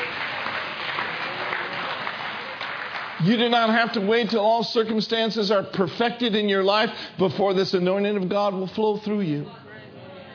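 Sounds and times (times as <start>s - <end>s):
church audience clapping: 0.0s - 4.4s
speech: 3.2s - 9.6s.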